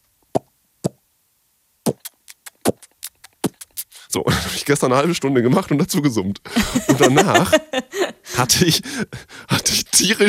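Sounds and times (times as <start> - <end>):
lip-kiss pops imitating a beatbox bass drum: 1.9 - 4.0
speech: 4.1 - 10.2
laughter: 6.5 - 8.8.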